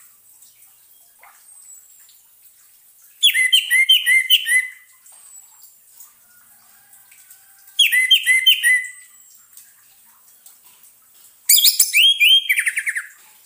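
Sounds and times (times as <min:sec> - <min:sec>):
orange-headed thrush song of whistled and chirping notes: 0:03.2 - 0:04.8, 0:07.8 - 0:09.1, 0:11.5 - 0:13.2.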